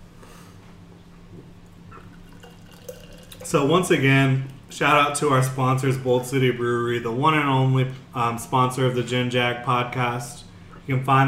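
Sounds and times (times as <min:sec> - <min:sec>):
low hum: 0:00.0 - 0:11.2
beer pouring into a glass: 0:01.7 - 0:05.2
speech: 0:03.5 - 0:11.2.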